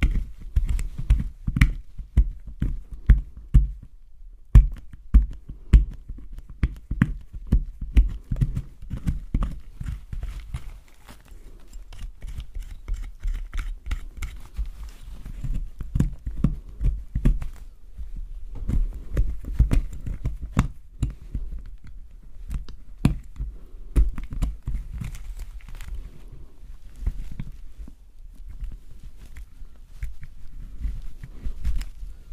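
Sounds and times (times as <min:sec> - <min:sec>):
soap being carved, cuts and scrapes: 0:00.0 - 0:03.9, 0:04.5 - 0:17.4, 0:18.6 - 0:27.6.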